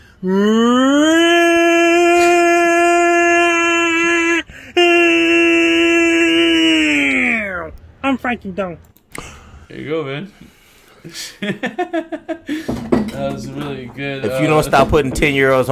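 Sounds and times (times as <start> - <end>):
speech: 0.2 - 0.8, 8.3 - 15.7
voice imitating a tornado siren: 0.2 - 7.7
laughter: 11.0 - 12.7.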